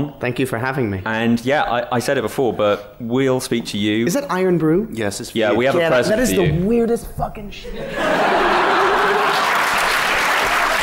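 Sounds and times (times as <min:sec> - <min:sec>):
speech: 0:00.0 - 0:08.7
laughter: 0:07.7 - 0:10.8
clapping: 0:08.8 - 0:10.8.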